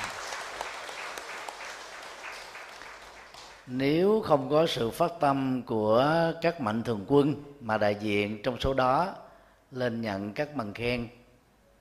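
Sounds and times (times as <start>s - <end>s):
audience applause: 0.0s - 3.7s
speech: 3.7s - 11.2s.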